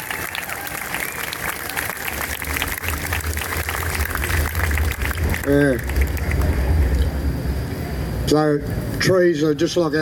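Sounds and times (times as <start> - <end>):
audience applause: 0.0 - 7.0
speech: 5.5 - 5.9, 8.3 - 9.9.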